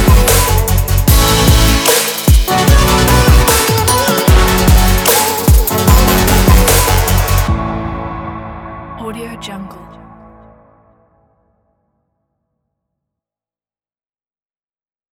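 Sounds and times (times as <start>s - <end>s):
future bass music: 0.0s - 7.8s.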